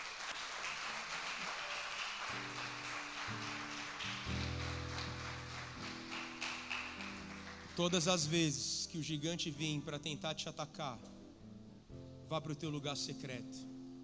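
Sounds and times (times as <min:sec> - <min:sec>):
audience applauding: 0:00.0 - 0:08.3
speech: 0:07.8 - 0:11.2, 0:12.3 - 0:13.7.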